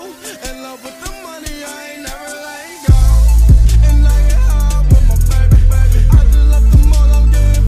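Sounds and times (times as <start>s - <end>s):
boosted bass: 2.9s - 7.6s.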